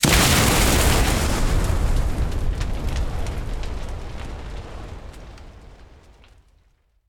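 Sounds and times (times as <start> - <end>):
plane explosion: 0.0 - 5.5.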